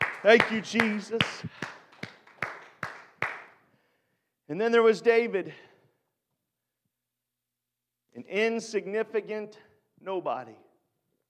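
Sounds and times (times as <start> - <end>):
group clapping in unison: 0.0 - 3.6
speech: 0.2 - 1.8, 4.5 - 5.7, 8.2 - 10.6.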